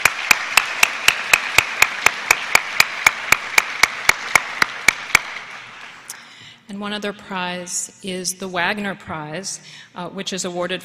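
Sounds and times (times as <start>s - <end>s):
audience applause: 0.0s - 6.1s
speech: 6.7s - 10.8s.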